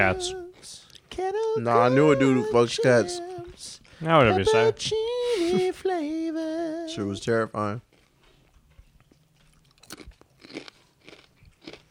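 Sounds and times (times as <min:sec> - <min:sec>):
speech: 0:00.0 - 0:06.2, 0:06.9 - 0:07.9
crunching potato chips: 0:07.8 - 0:11.8.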